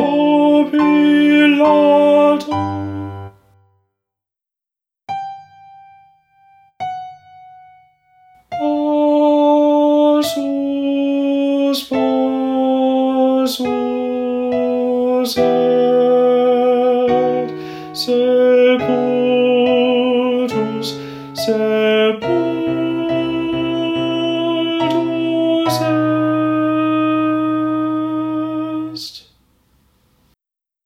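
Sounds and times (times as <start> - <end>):
tenor singing: 0.0 - 3.5, 8.5 - 29.4.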